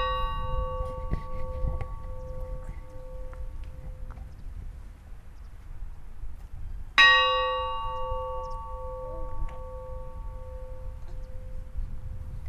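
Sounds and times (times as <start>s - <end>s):
funeral church bells ringing at Gufudalur church: 0.0s - 4.1s, 7.0s - 12.3s.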